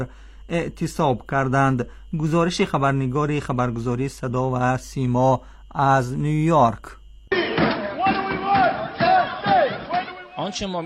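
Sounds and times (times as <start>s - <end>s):
speech: 0.0s - 7.0s, 10.4s - 10.8s
striking airport workers shouting protest: 7.3s - 10.8s.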